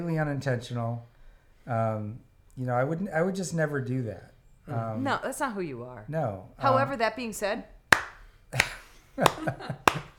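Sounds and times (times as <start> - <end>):
speech: 0.0 - 7.8, 8.5 - 10.1
slow hand claps: 7.9 - 10.1.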